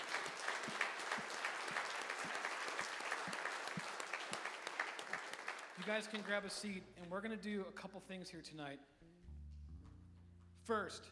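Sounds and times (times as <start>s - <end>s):
audience clapping: 0.0s - 6.8s
speech: 5.8s - 9.0s, 10.7s - 11.1s.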